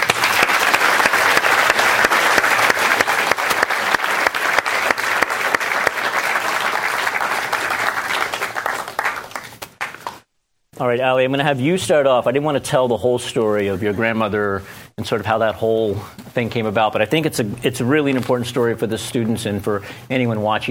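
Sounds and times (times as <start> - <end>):
audience applause welcoming guests onstage: 0.0 - 10.2
speech: 10.9 - 20.6.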